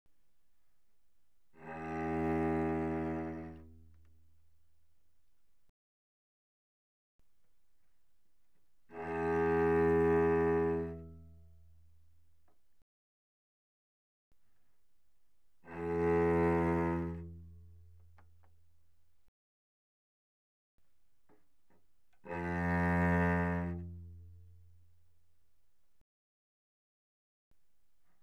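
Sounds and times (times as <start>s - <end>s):
cello played arco pianissimo sul C: 1.5s - 4.5s, 8.8s - 12.0s, 15.6s - 18.6s, 21.8s - 24.9s.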